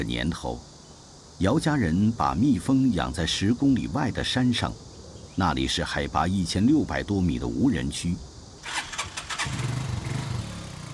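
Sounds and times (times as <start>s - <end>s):
speech: 0.0s - 0.7s, 1.4s - 9.6s
motorcycle engine starting and idling: 8.6s - 10.9s.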